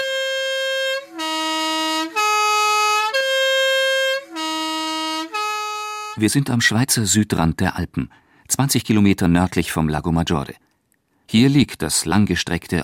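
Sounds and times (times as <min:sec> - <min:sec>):
post bus horn tune: 0:00.0 - 0:06.2
speech: 0:06.2 - 0:10.7, 0:11.3 - 0:12.8.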